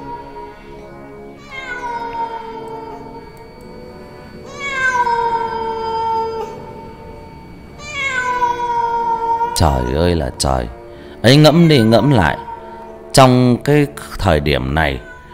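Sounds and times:
cat meowing on a windy rainy night: 0.0 - 3.6, 4.4 - 10.1, 11.5 - 12.8, 14.9 - 15.3
speech: 9.6 - 12.4, 13.2 - 15.1.

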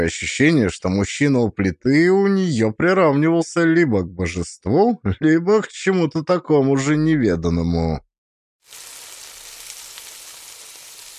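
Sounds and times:
speech: 0.0 - 8.1
ham sizzling in a hot frying pan: 8.6 - 11.1.

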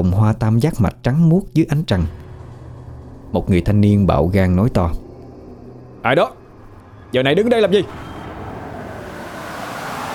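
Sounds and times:
speech: 0.0 - 2.2, 3.3 - 5.0, 6.0 - 6.4, 7.1 - 8.1
wind blowing sand over a field of white buckwheat flowers at night: 4.1 - 10.1.

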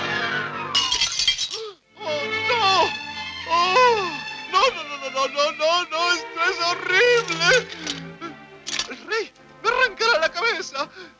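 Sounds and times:
music: 0.0 - 11.1
delicate glass slipper falling and shattering on the floor: 0.8 - 1.8.

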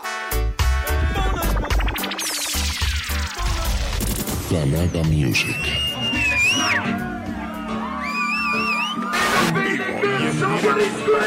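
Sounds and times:
steady bass line: 0.3 - 7.2
live concert crowd shouting and whooping: 3.1 - 11.2
speech: 4.5 - 5.9, 10.4 - 11.2.

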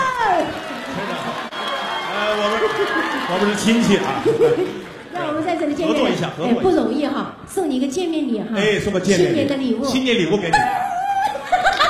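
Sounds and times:
audience whooping and cheering: 0.0 - 5.2
laughter: 2.3 - 5.1, 10.5 - 11.8
speech: 2.8 - 10.8.

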